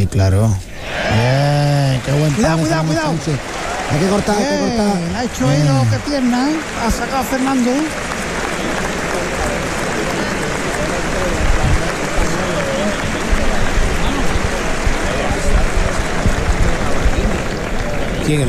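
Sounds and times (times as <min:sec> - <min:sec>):
speech: 0:00.0 - 0:08.1, 0:18.3 - 0:18.4
bullring crowd applauding: 0:00.8 - 0:18.4.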